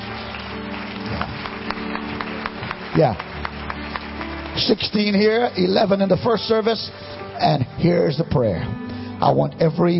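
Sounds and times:
audience clapping hands in praise: 0.0 - 6.4
speech: 3.0 - 3.3, 4.6 - 9.9.

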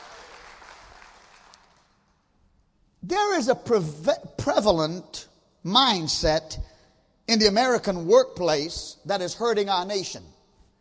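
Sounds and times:
audience applause: 0.0 - 1.9
speech: 3.1 - 6.7, 7.3 - 10.3.

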